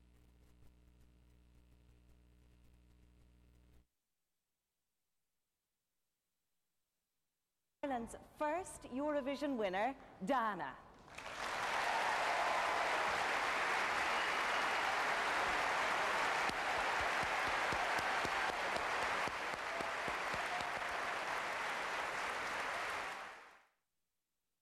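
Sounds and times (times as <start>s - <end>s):
speech: 7.8s - 10.8s
audience applause: 11.1s - 23.6s.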